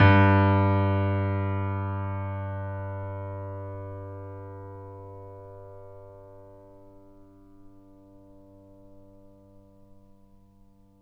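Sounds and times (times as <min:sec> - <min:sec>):
grand piano G1 note played mezzo-forte: 0:00.0 - 0:07.3.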